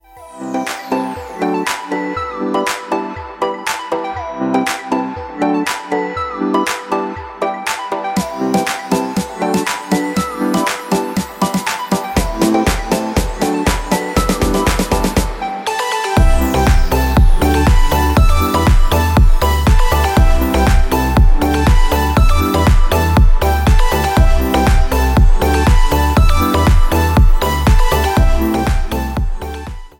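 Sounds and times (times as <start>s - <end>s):
electronic pop music: 0.0s - 29.9s.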